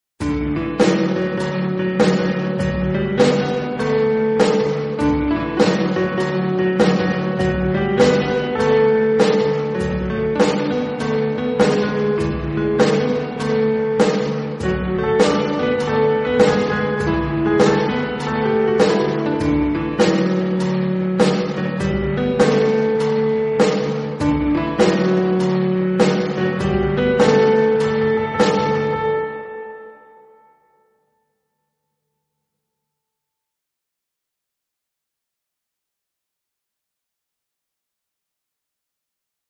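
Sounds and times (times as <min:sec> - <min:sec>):
instrumental music: 0:00.2 - 0:30.9.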